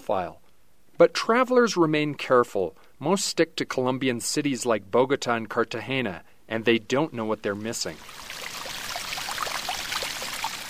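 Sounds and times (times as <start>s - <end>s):
speech: 0.1s - 0.4s, 1.0s - 8.4s
Caño Cristales river water cascading over algae-covered boulders in Colombia: 7.6s - 10.6s.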